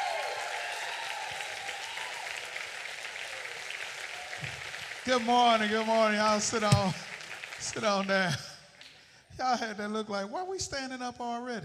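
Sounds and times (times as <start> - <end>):
audience applause welcoming a speaker: 0.0 - 8.7
speech: 4.4 - 8.5, 9.4 - 11.6.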